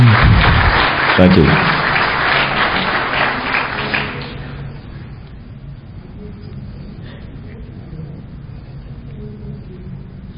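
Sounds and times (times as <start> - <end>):
audience applause: 0.0 - 4.7
speech: 1.2 - 1.7.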